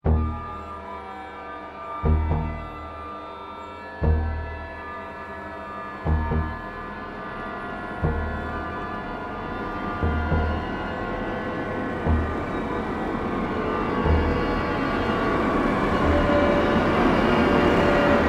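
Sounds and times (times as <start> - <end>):
escape music: 0.0 - 18.1.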